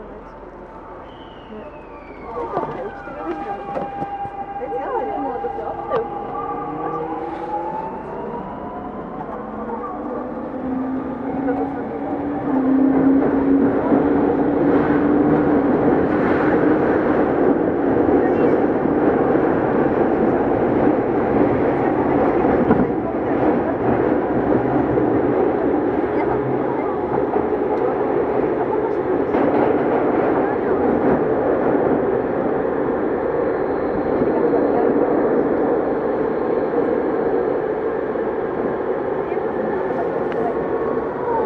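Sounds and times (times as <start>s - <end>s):
Tokyu 2000 series train motor whine while accelerating: 0.0s - 13.1s
Tokyu 2000 series train running between Shibuya and Azamino: 0.0s - 41.4s
faint voices: 0.0s - 41.4s.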